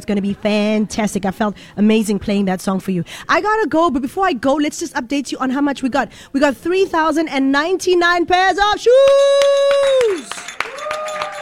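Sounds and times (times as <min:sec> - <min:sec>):
speech: 0:00.0 - 0:11.0
hands clapping: 0:09.0 - 0:11.4.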